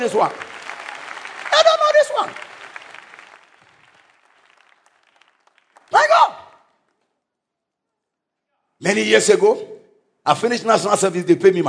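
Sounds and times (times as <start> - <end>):
speech: 0.0 - 0.4, 1.6 - 2.5, 8.8 - 11.6
audience clapping: 0.0 - 7.2.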